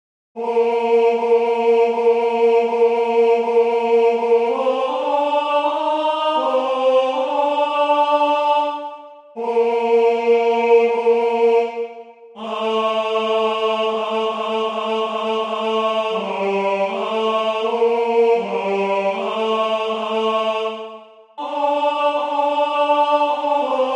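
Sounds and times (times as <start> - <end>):
tenor singing: 0.4 - 23.9.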